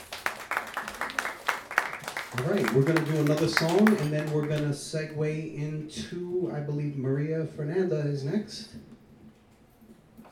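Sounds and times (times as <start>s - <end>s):
audience applause: 0.0s - 4.8s
speech: 2.4s - 8.9s.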